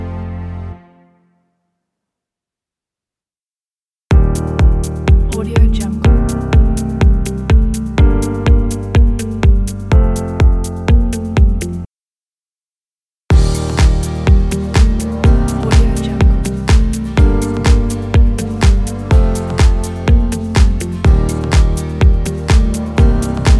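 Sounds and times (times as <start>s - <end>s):
commercial background music: 4.2s - 11.9s, 13.3s - 23.5s.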